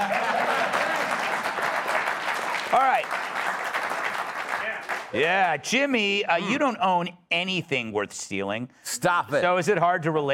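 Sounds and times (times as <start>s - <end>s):
audience applause: 0.0s - 5.6s
speech: 2.7s - 3.3s, 5.1s - 10.3s.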